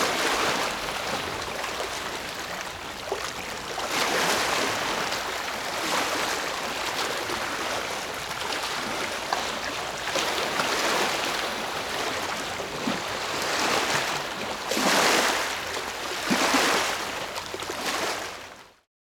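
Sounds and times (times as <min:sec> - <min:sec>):
sea waves: 0:00.0 - 0:18.6.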